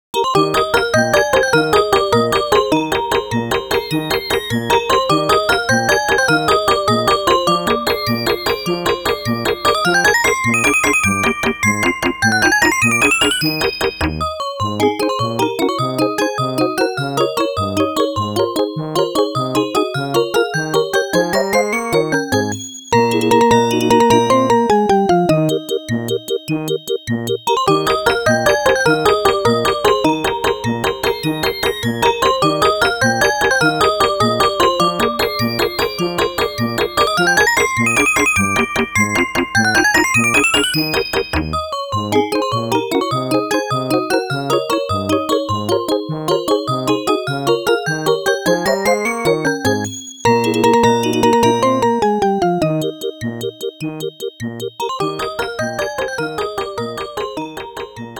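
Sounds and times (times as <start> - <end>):
waltz music: 0.2 - 58.1.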